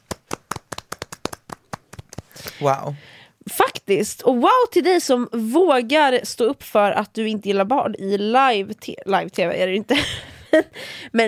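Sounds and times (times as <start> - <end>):
small group clapping for child actors: 0.0 - 2.4
speech: 2.6 - 11.2.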